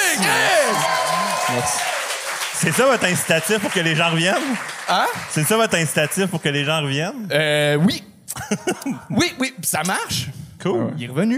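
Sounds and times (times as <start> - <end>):
voices calling out and cheering: 0.0 - 5.2
audience applause: 0.0 - 6.8
speech: 0.2 - 0.8, 1.5 - 2.0, 2.6 - 11.3
laughter: 8.3 - 9.1.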